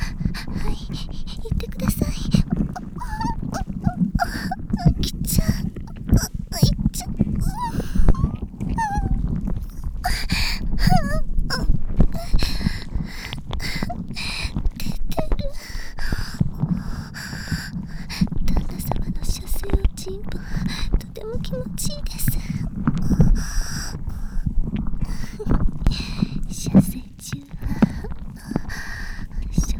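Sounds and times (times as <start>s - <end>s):
ear tentacle sounds: 0.0s - 29.7s
whispering inside the head: 0.4s - 3.8s, 4.9s - 9.2s, 18.5s - 22.7s, 25.4s - 27.7s, 29.4s - 29.7s.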